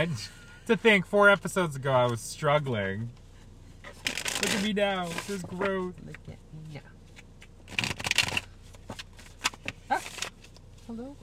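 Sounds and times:
speech: 0.0 - 3.2, 4.4 - 6.9, 10.9 - 11.2
playing cards shuffled for a card reading: 3.9 - 5.7, 7.7 - 10.4.

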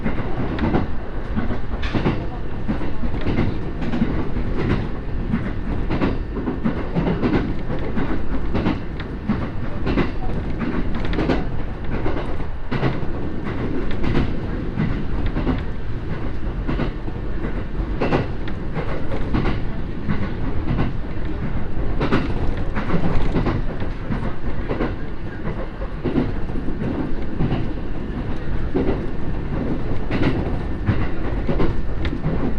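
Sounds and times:
Echigo Tokimeki Railway diesel railcar carriage rumble: 0.0 - 32.5.

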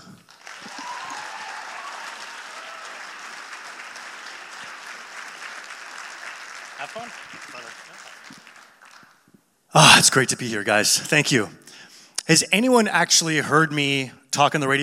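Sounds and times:
crowd clapping: 0.0 - 9.3
speech: 6.8 - 8.4, 9.7 - 14.8.

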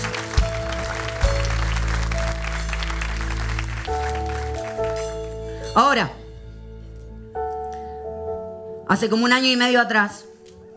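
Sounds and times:
audience applauding: 0.0 - 5.5
loud sustained keyboard chords: 0.0 - 8.7
speech: 5.8 - 6.2, 8.9 - 10.3.

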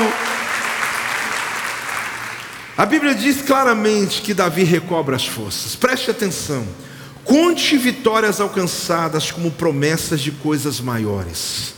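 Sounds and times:
audience applause: 0.0 - 2.8
speech: 2.8 - 11.7.

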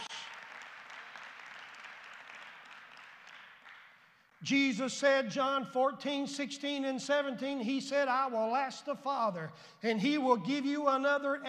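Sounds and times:
audience hand clapping: 0.0 - 4.4
speech: 4.4 - 11.4.

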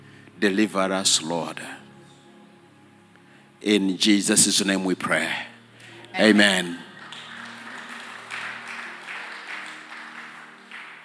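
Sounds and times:
speech: 0.4 - 1.8, 3.6 - 5.5, 6.1 - 6.9
audience clapping hands: 6.3 - 11.0.

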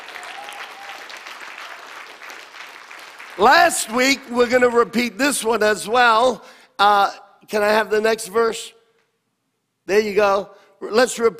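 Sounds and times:
audience clapping: 0.0 - 4.3
speech: 3.4 - 8.8, 9.9 - 11.3.

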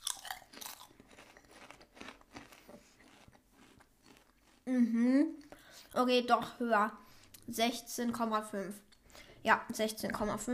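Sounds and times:
potato chips being crunched and chewed during a chip tasting: 0.0 - 6.0
speech: 4.7 - 10.5.

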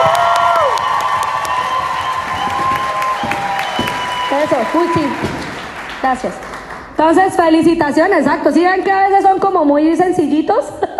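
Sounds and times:
audience applauding: 0.0 - 7.0
speech: 4.5 - 5.3, 6.0 - 10.9.

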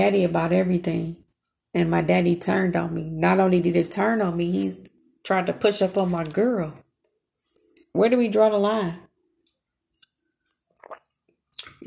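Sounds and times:
speech: 0.0 - 6.8, 7.9 - 9.0
person drinking water: 10.8 - 11.8.

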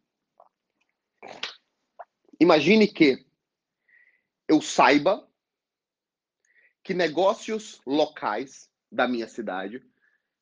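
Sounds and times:
person taking a small sip of water: 0.4 - 2.3
speech: 2.4 - 3.2, 4.5 - 5.3, 6.9 - 9.9.

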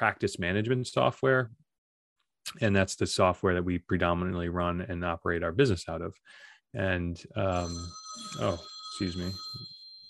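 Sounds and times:
speech: 0.0 - 1.6, 2.5 - 9.8
telephone ringing with an incoming call: 7.6 - 10.0.

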